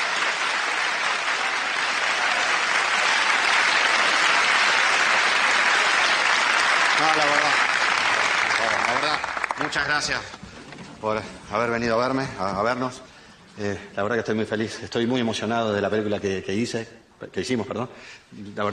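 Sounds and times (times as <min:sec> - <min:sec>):
audience applauding: 0:00.0 - 0:10.4
speech: 0:09.6 - 0:18.7.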